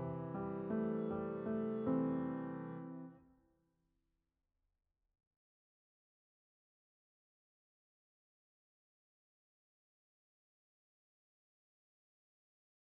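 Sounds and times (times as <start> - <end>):
piano: 0.0 - 3.3.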